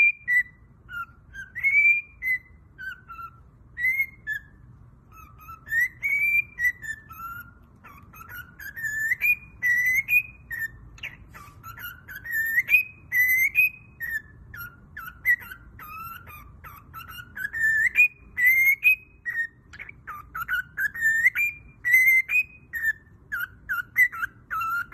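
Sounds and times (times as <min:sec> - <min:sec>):
cockatiel whistling: 0:00.0 - 0:24.9.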